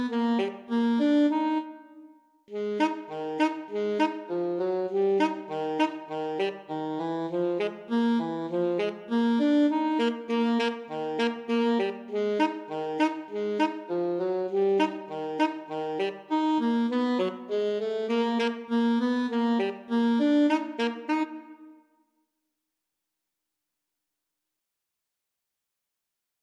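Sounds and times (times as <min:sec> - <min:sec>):
alto saxophone duet: 0:00.0 - 0:21.8.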